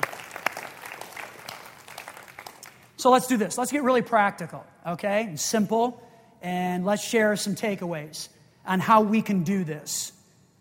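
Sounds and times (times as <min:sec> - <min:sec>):
audience clapping: 0:00.0 - 0:03.0
speech: 0:03.0 - 0:10.2.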